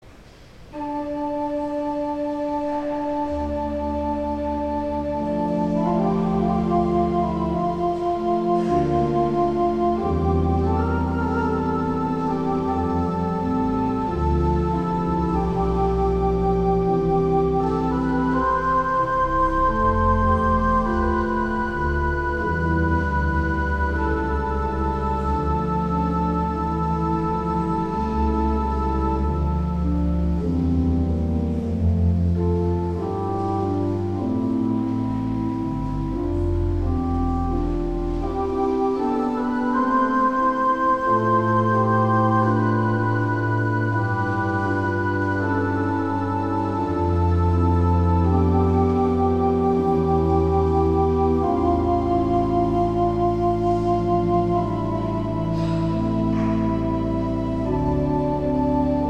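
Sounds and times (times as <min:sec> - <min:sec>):
organ chorale prelude: 0:00.2 - 0:59.0.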